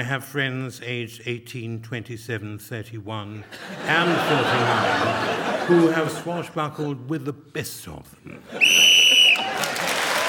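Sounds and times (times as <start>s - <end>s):
speech: 0.0s - 8.8s
laughter: 3.4s - 6.8s, 8.3s - 10.2s
whistle blown to end a turn: 8.6s - 9.5s.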